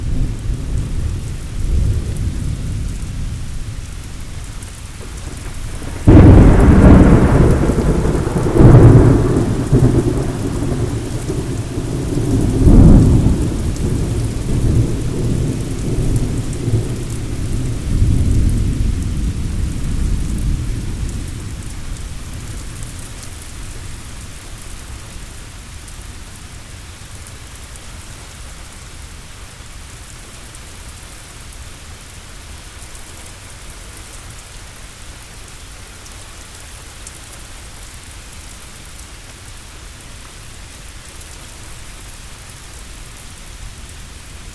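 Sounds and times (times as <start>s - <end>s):
thunderstorm: 0.0s - 24.1s.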